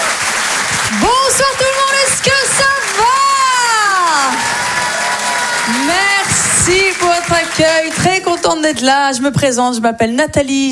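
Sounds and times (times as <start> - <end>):
audience applause and cheering welcoming a comedian onto the stage: 0.0 - 8.7
speech: 0.9 - 2.8, 5.9 - 10.6.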